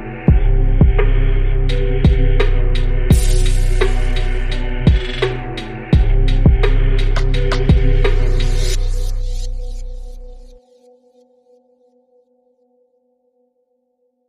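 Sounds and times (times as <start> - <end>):
remix music: 0.0 - 10.6.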